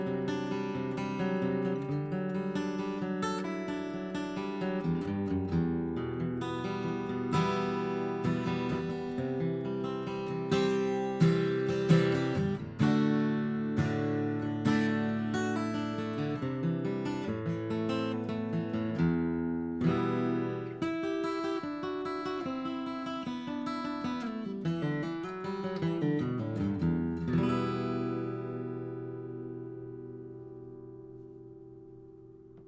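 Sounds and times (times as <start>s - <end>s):
acoustic guitar: 0.0s - 32.6s.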